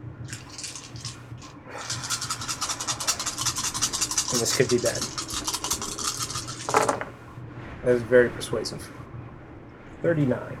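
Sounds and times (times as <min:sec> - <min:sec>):
dice being rolled: 0:00.3 - 0:07.1
speech: 0:04.3 - 0:05.2, 0:07.9 - 0:09.0, 0:10.0 - 0:10.5.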